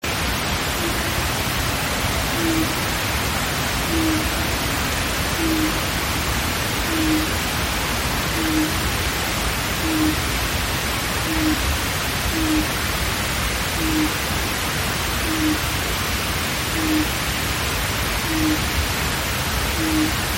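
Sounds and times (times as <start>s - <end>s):
steady hiss: 0.0s - 20.3s
Japanese night heron hooting: 0.8s - 1.4s, 2.1s - 2.8s, 3.8s - 6.0s, 6.8s - 7.5s, 8.3s - 8.8s, 9.8s - 10.3s, 11.2s - 11.6s, 12.3s - 12.8s, 13.8s - 14.3s, 15.2s - 15.7s, 16.7s - 17.2s, 18.2s - 18.7s, 19.7s - 20.2s.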